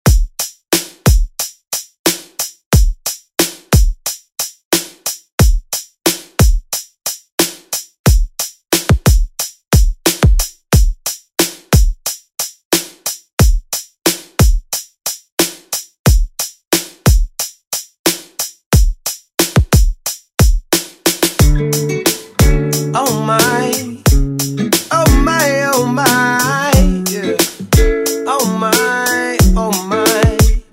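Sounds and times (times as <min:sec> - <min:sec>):
pop drum loop: 0:00.0 - 0:30.7.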